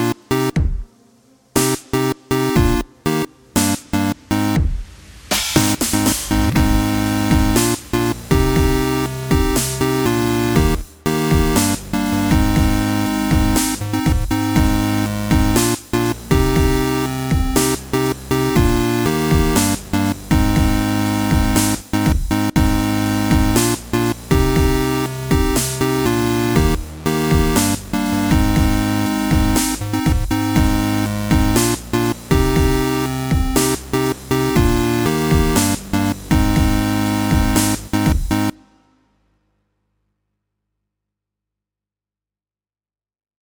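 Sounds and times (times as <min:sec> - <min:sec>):
half 8-bit starter jingle: 0:00.0 - 0:00.6, 0:01.6 - 0:04.6, 0:05.6 - 0:38.6.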